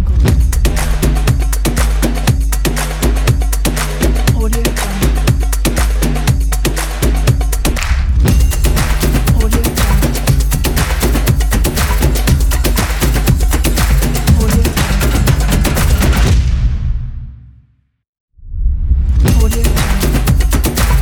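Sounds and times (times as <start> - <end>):
hybrid ethnic percussion logo: 0.2 - 16.5, 19.3 - 21.0.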